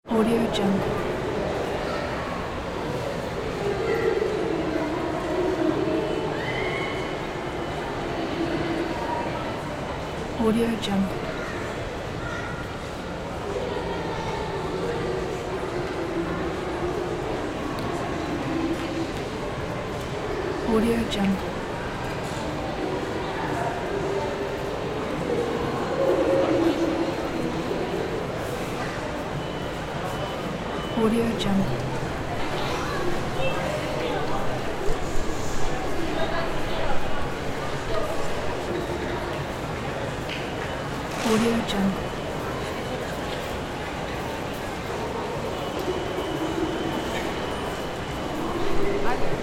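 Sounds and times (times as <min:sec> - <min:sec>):
mall ambience: 0:00.0 - 0:49.4.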